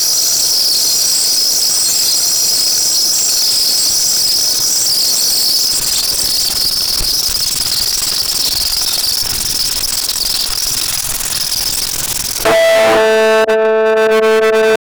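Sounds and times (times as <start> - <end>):
weird classic digital robot sound: 12.4 - 14.8.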